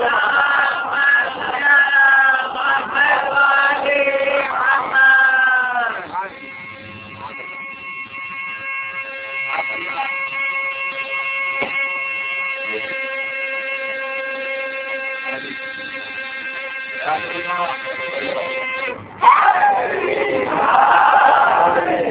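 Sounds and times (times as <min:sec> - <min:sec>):
children chanting slogans: 0:00.0 - 0:06.0, 0:19.3 - 0:22.0
steady droning tone: 0:00.0 - 0:22.0.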